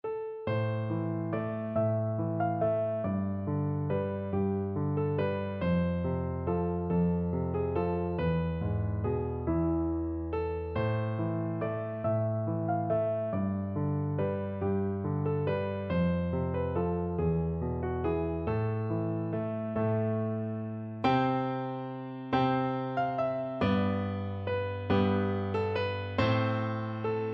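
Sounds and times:
folk tune piano duet: 0:00.1 - 0:27.3.

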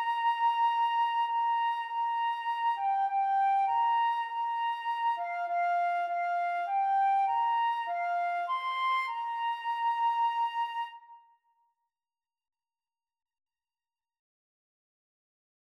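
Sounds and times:
flute and clarinet duet: 0:00.0 - 0:11.3.

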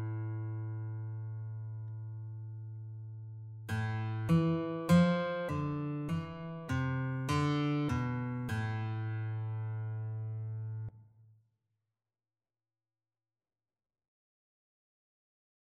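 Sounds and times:
guitar duet: 0:00.0 - 0:10.9.

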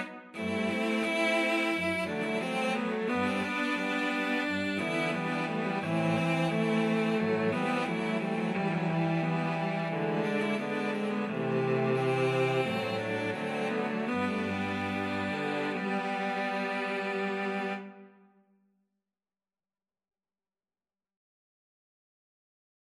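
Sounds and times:
cello quartet: 0:00.0 - 0:18.1.

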